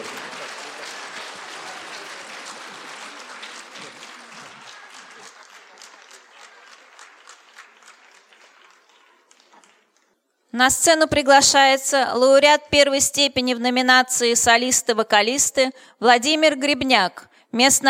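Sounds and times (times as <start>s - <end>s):
audience applause at an award ceremony and gala concert: 0.0s - 10.2s
speech: 10.6s - 17.8s.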